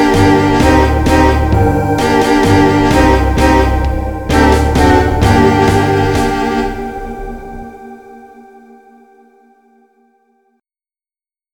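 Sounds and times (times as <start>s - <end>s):
cave ambience: 0.0s - 9.0s.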